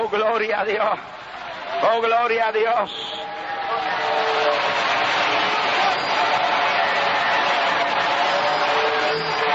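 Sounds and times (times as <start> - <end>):
speech: 0.1 - 1.1, 1.7 - 3.2
applause ovation: 3.2 - 9.5.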